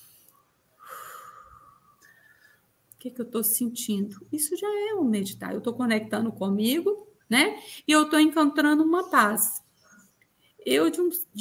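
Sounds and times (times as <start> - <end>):
slow nasal breath during meditation: 0.0 - 2.7
speech: 3.0 - 9.6, 10.6 - 11.3.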